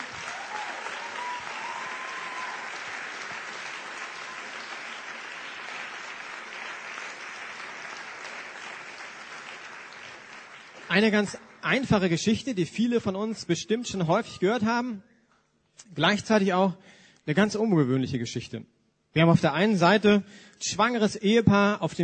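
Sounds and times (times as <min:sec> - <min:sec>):
audience applause: 0:00.0 - 0:11.8
speech: 0:10.9 - 0:15.1, 0:15.8 - 0:22.0.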